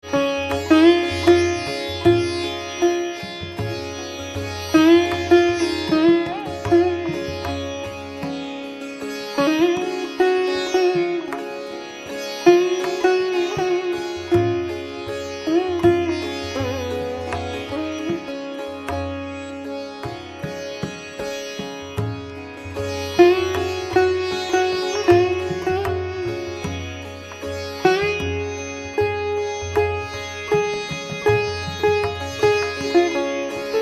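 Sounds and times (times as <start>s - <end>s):
slow-tempo vilambit gat instrumental: 0.0s - 33.8s.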